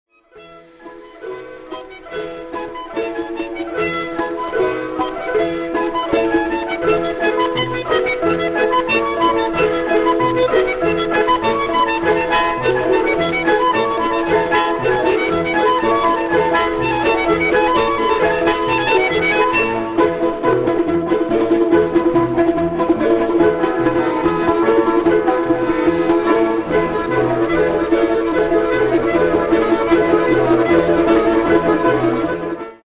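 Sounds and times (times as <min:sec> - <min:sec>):
lyrical melody: 0:00.2 - 0:32.8.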